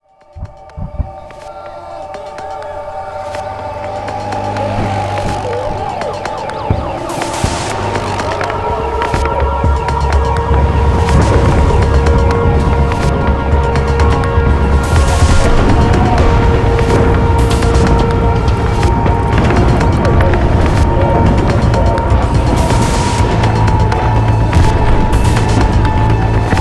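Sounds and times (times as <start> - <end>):
loading music: 0.0 - 26.5.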